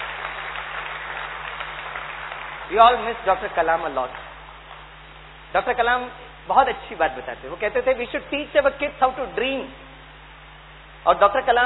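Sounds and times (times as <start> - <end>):
audience clapping loudly in tribute to Dr. Kalam: 0.0 - 4.9
speech: 2.7 - 4.2, 5.5 - 9.8, 11.0 - 11.6.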